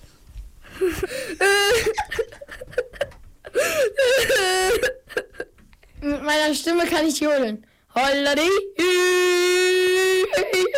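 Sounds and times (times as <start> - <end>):
child imitating crying: 0.8 - 2.8, 3.5 - 5.5, 8.8 - 10.7
speech: 6.5 - 9.1.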